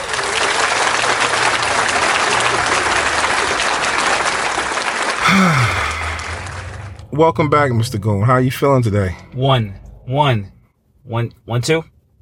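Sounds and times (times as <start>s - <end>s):
audience applause welcoming a returning guest onstage: 0.0s - 7.0s
low vocal sound sweeping downward: 5.2s - 7.2s
speech: 5.4s - 5.8s, 7.1s - 11.9s.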